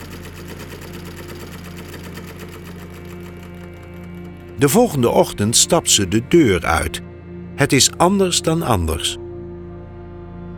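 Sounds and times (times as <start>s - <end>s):
sewing machine running: 0.0s - 6.1s
speech: 4.6s - 9.2s.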